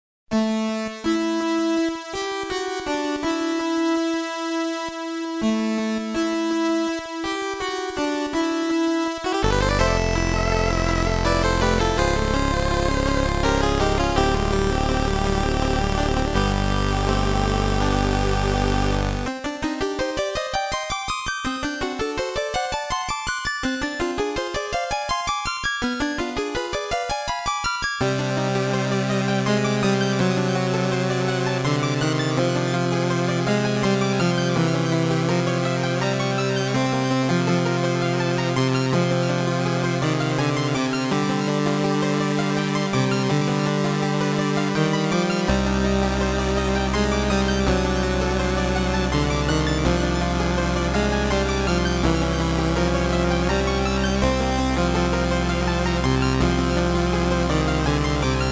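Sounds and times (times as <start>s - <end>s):
Famicom VRC6 chiptune prelude: 0.3s - 58.5s.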